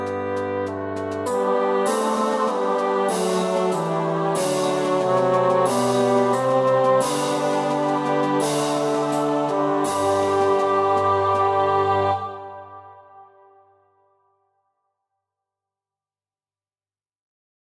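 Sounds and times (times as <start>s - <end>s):
mini bassoon track with melody: 0.0s - 13.5s.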